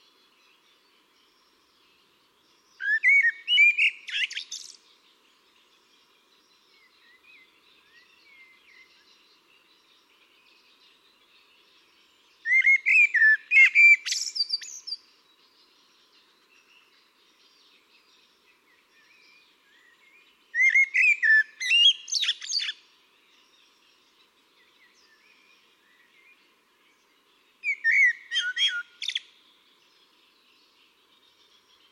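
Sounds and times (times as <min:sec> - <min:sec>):
Eurasian blackbird singing: 0:02.6 - 0:05.0, 0:06.4 - 0:11.0, 0:11.7 - 0:29.4.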